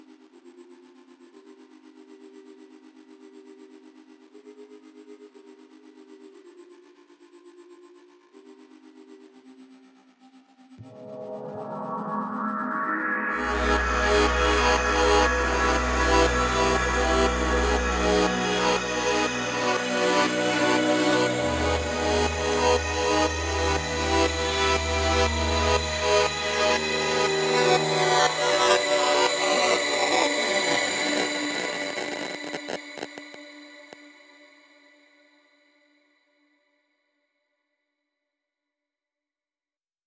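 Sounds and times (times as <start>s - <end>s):
synth pads: 10.8s - 34.6s.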